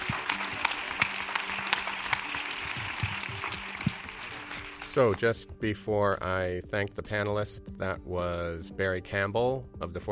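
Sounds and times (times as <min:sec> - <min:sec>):
audience applause: 0:00.0 - 0:05.2
speech: 0:05.0 - 0:10.1.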